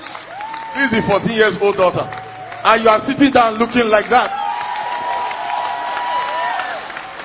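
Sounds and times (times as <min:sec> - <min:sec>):
audience clapping: 0:00.0 - 0:07.2
whoops and shouts from crowd: 0:00.3 - 0:01.3, 0:04.2 - 0:06.9
speech: 0:00.7 - 0:04.4.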